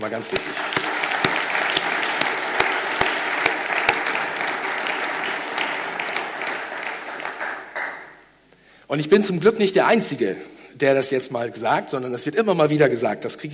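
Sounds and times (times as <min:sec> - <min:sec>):
speech: 0:00.0 - 0:01.2, 0:08.9 - 0:13.5
audience applause: 0:00.0 - 0:08.2.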